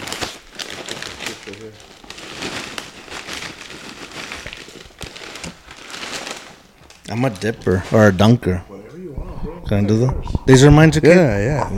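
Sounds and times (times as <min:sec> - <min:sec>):
paper crinkling: 0:00.0 - 0:08.6
speech: 0:07.1 - 0:08.7, 0:09.7 - 0:11.7.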